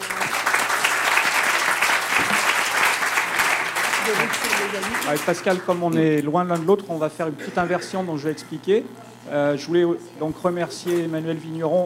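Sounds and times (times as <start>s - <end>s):
audience applause: 0.0s - 6.0s
speech: 4.1s - 11.8s.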